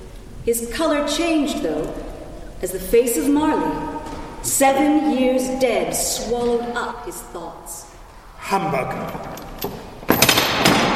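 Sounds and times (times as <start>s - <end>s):
speech: 0.4s - 7.9s, 8.5s - 9.3s
heavy chain clanking and dragging: 8.9s - 10.9s.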